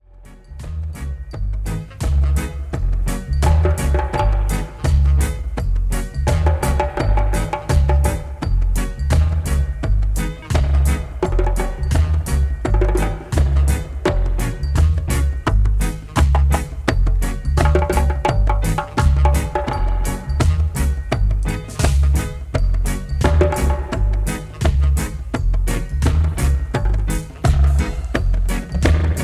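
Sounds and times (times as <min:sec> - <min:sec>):
drums: 0:00.0 - 0:29.2.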